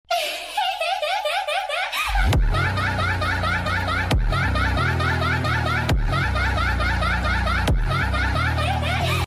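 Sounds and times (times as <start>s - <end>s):
person laughing: 0.1s - 9.2s.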